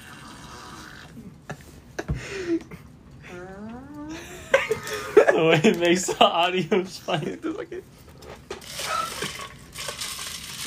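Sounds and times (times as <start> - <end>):
Sunny D juice drink pouring into a cup: 0.0 - 1.2, 8.6 - 10.6
speech: 5.4 - 8.0.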